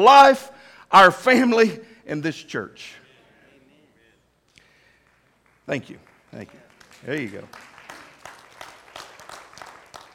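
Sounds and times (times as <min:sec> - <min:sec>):
speech: 0:00.0 - 0:03.0, 0:05.7 - 0:07.7
audience clapping: 0:04.7 - 0:10.1.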